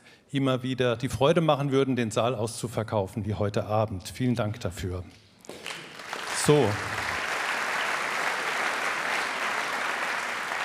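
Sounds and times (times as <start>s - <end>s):
speech: 0.3s - 5.2s, 6.4s - 7.0s
audience applause in concert hall: 5.5s - 10.6s.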